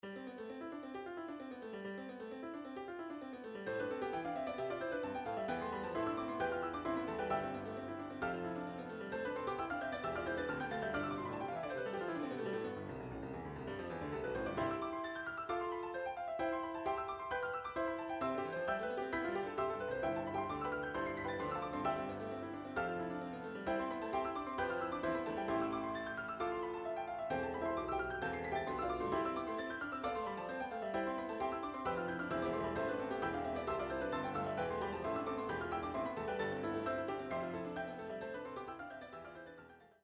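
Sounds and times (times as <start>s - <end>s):
piano four hands: 0.0s - 40.0s.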